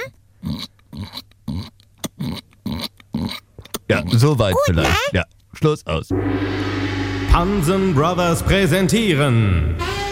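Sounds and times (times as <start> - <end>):
human voice imitating a piglet oinking: 0.0 - 5.2
speech: 0.1 - 1.2, 3.9 - 6.7, 7.4 - 10.0.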